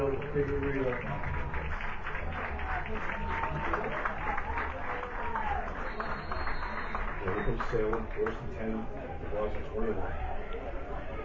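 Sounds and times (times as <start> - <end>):
crowd applauding: 0.0 - 11.2
faint murmur of voices: 0.0 - 11.2
speech: 0.1 - 1.8, 2.4 - 4.1, 7.2 - 10.3.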